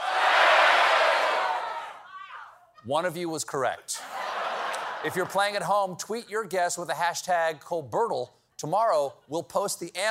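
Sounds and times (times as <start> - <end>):
late-night show studio audience shouting word guesses: 0.0 - 2.6
speech: 2.8 - 4.2, 5.0 - 10.0.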